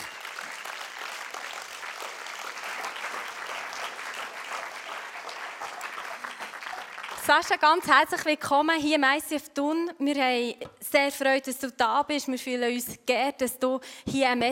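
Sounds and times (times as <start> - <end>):
audience applause: 0.0 - 7.9
speech: 7.3 - 14.5.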